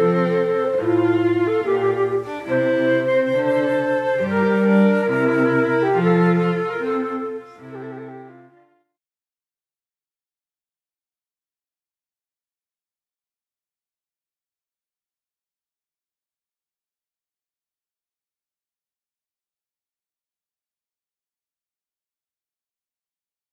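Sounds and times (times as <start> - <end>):
music: 0.0 - 8.6.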